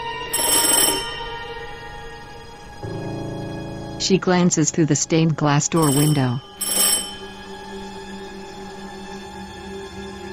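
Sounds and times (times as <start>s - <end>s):
old-fashioned twist doorbell ringing: 0.1s - 2.7s, 5.7s - 8.1s
speech: 4.1s - 6.8s.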